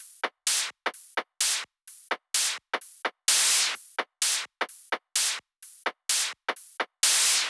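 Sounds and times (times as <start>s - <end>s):
drum kit at 128 BPM: 0.0s - 7.4s.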